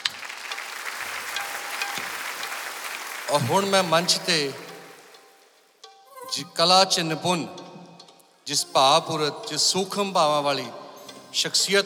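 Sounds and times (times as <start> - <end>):
audience applause for three singers at a stage event: 0.0 - 5.2
speech: 3.3 - 4.6, 6.4 - 7.6, 8.5 - 11.8.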